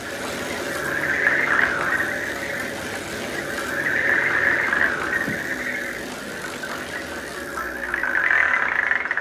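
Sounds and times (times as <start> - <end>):
wheel of fortune spinning for a game: 0.0 - 9.2.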